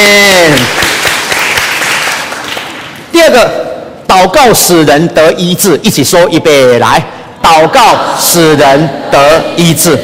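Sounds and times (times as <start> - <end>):
audience clapping hands: 0.2 - 3.1
speech: 3.2 - 10.0.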